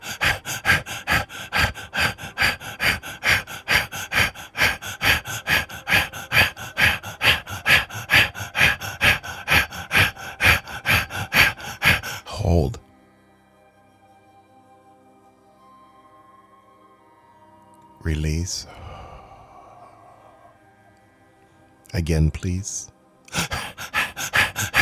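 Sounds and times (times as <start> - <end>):
rapid rhythmic breathing during a guided breathing exercise: 0.0 - 12.8, 18.1 - 24.7
speech: 22.0 - 23.0.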